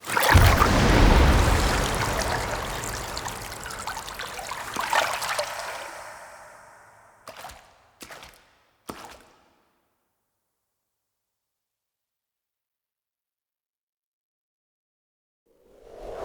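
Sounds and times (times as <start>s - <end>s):
object pulled from water: 0.0s - 9.6s.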